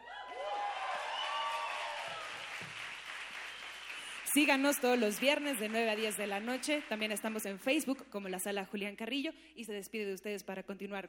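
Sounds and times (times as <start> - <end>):
whoops and cheers: 0.0 - 2.7
live audience applause: 0.0 - 7.4
speech: 4.4 - 11.0.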